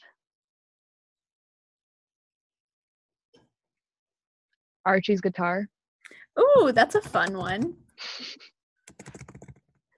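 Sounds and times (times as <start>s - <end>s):
speech: 4.8s - 5.8s, 6.4s - 9.2s
typing on a computer keyboard: 6.8s - 7.8s, 8.9s - 9.8s.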